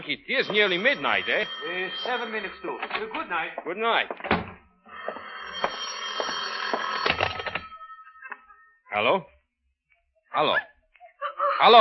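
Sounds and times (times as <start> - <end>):
speech: 0.0 - 4.4, 9.0 - 9.3, 10.3 - 10.7, 11.6 - 11.7
telephone ringing: 0.0 - 8.5.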